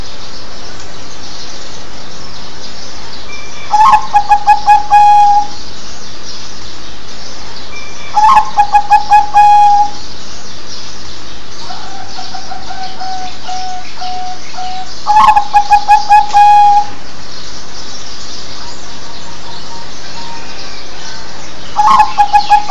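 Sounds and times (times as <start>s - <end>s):
zebra dove cooing: 3.7s - 5.6s, 8.1s - 10.0s, 11.7s - 17.0s, 21.8s - 22.6s.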